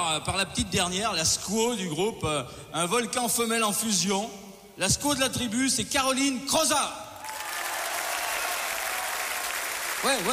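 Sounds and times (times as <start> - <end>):
speech: 0.2 - 7.0, 10.0 - 10.3
audience applause: 7.2 - 10.3.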